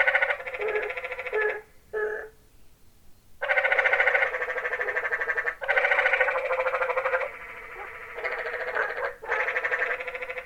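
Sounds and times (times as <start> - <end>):
tree frogs calling in Zion Canyon: 0.0 - 2.4, 3.4 - 10.4.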